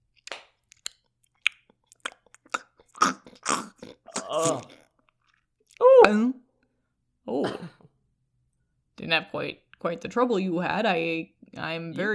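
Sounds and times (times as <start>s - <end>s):
chewing and biting food while tasting it: 0.1s - 5.4s
person humming: 4.1s - 4.8s
speech: 4.3s - 4.8s, 6.0s - 6.4s, 9.3s - 12.1s.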